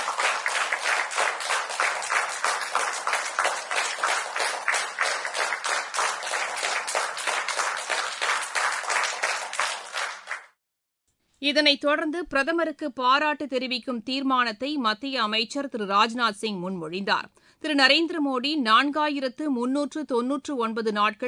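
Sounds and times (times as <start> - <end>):
ministers applauding at cabinet meeting: 0.0 - 10.6
speech: 11.4 - 21.2.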